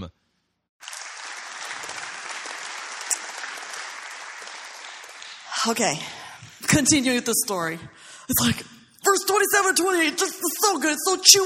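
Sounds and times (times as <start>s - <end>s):
audience clapping: 0.8s - 6.9s
speech: 5.6s - 11.4s.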